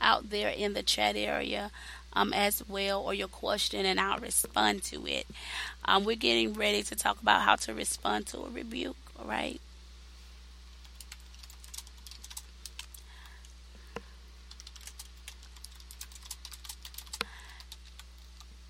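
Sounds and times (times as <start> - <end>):
faint low hum: 0.0 - 18.6
speech: 0.2 - 9.7
typing on a computer keyboard: 10.8 - 13.0, 14.5 - 18.5.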